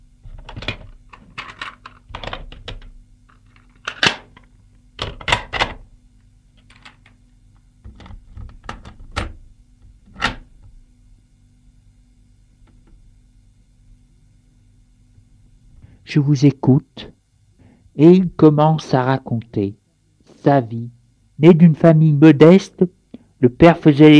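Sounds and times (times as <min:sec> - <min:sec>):
tape recorder set down on an armchair armrest and readied: 0:00.3 - 0:05.8, 0:06.6 - 0:07.2, 0:07.8 - 0:10.8
speech: 0:16.1 - 0:17.2, 0:18.0 - 0:19.8, 0:20.4 - 0:24.1.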